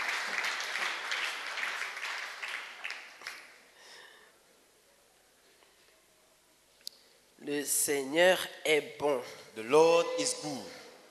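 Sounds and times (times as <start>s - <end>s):
church congregation clapping in a hall: 0.0s - 3.7s
speech: 7.5s - 10.8s.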